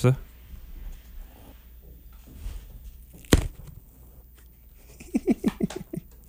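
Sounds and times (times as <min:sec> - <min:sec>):
biscuit being snapped in half: 0:03.1 - 0:03.8
laughter: 0:04.8 - 0:06.2.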